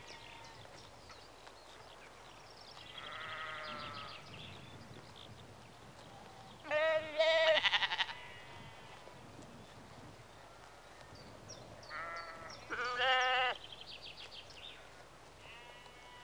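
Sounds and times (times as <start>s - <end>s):
sheep bleating outdoors in a rural setting in the early evening: 3.0s - 4.1s, 6.6s - 9.0s, 11.9s - 13.6s, 15.4s - 16.2s.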